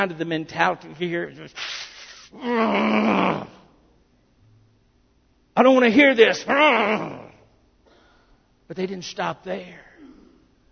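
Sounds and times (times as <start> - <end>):
speech: 0.0 - 3.6, 5.6 - 7.2, 8.7 - 9.8
person imitating a growl: 2.4 - 3.6, 6.5 - 7.4.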